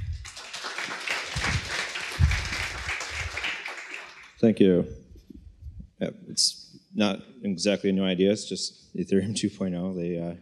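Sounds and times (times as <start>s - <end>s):
audience applause: 0.0s - 4.4s
speech: 4.4s - 5.0s, 6.0s - 10.4s.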